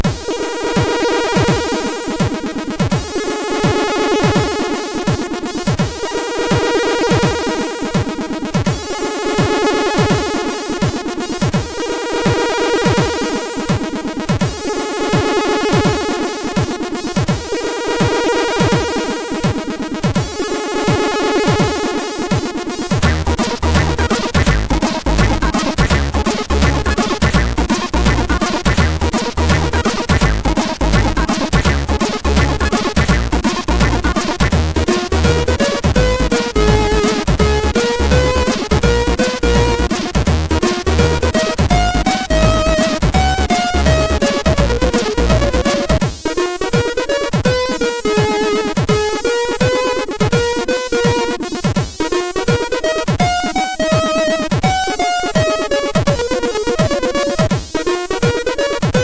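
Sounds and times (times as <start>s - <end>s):
funky chiptune music on SID MOS6581R3 chip: 0.0s - 59.0s.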